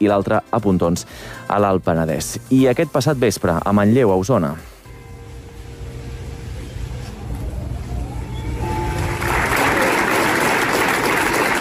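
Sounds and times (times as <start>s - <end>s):
speech: 0.0s - 4.7s
long crowd applause at memorial gathering: 7.0s - 11.6s.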